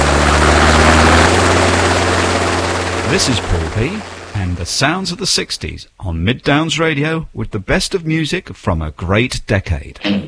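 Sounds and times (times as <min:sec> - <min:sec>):
air ambulance helicopter flying: 0:00.0 - 0:05.2
speech: 0:03.1 - 0:10.2.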